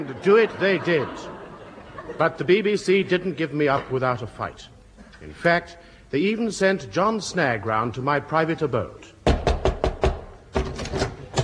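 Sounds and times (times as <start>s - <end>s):
speech: 0.0s - 1.4s, 2.1s - 9.1s
laughter: 0.0s - 3.5s
knocking on a door: 9.2s - 10.7s.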